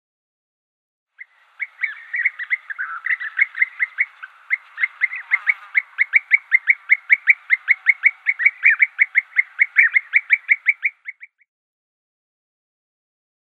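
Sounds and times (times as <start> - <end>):
European bee-eater rolling burry calls: 1.2 - 11.4.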